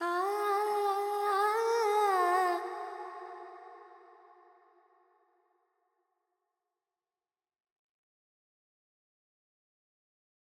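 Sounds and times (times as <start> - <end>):
Carnatic female vocal alaps in G pentatonic: 0.0 - 3.5.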